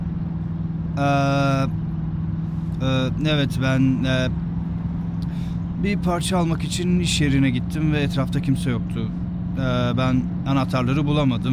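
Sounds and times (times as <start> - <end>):
car engine humming steadily while driving: 0.0 - 11.5
speech: 1.0 - 1.8, 3.2 - 4.4, 5.3 - 11.5.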